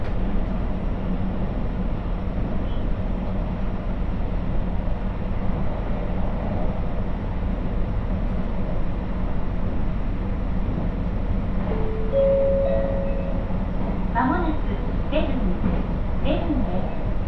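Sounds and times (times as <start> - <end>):
Muroran Main Line train rumble: 0.0 - 17.2
short tonal whine: 11.7 - 13.5.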